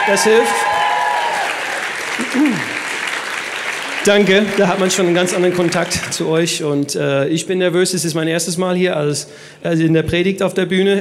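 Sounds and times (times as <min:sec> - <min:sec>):
audience clapping: 0:00.0 - 0:06.6
speech: 0:00.1 - 0:00.8, 0:02.3 - 0:02.8, 0:04.0 - 0:11.0.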